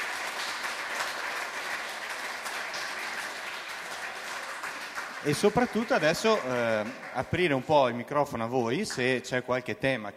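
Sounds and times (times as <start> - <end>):
audience applause: 0.0 - 7.9
speech: 5.2 - 10.1.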